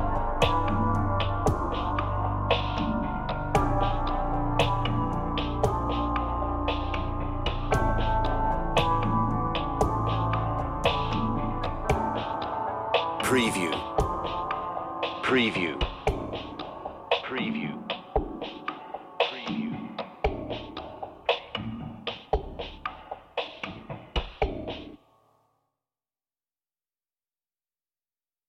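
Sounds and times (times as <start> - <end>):
piano: 0.0 - 15.3
groove beat: 0.0 - 25.0.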